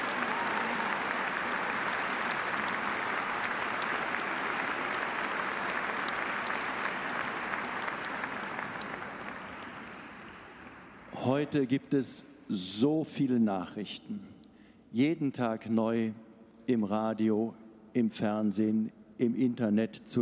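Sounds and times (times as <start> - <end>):
audience applause: 0.0 - 11.1
speech: 11.4 - 14.3, 14.9 - 20.2.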